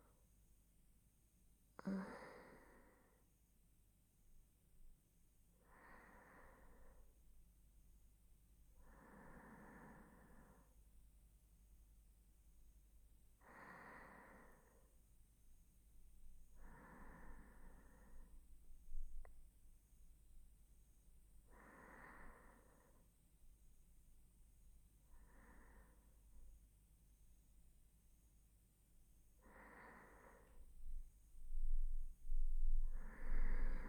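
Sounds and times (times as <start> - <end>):
person breathing in sleep on left side: 1.8 - 3.2, 5.6 - 7.1, 8.8 - 10.8, 13.4 - 14.9, 16.6 - 18.4, 21.5 - 23.1, 25.0 - 26.4, 29.4 - 30.9, 31.6 - 33.8.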